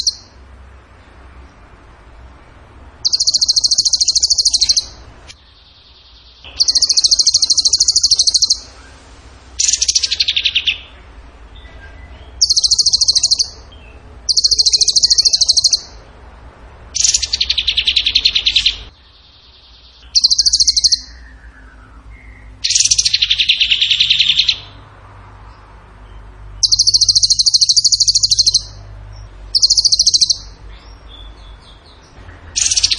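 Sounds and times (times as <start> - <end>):
bird giving high rattling trill: 0.0 - 0.3, 3.0 - 5.0, 6.2 - 8.7, 9.6 - 10.8, 12.4 - 13.6, 14.3 - 15.9, 17.0 - 18.9, 20.0 - 21.2, 22.6 - 24.6, 26.6 - 28.7, 29.5 - 30.6, 32.5 - 32.9.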